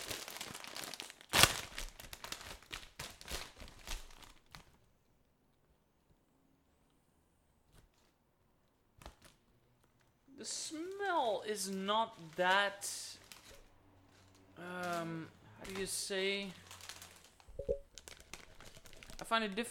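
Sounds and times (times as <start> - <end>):
crinkly snack bag being opened: 0.0 - 4.8, 13.2 - 15.2, 15.8 - 19.3
speech: 11.3 - 13.1, 14.6 - 16.6, 19.3 - 19.6.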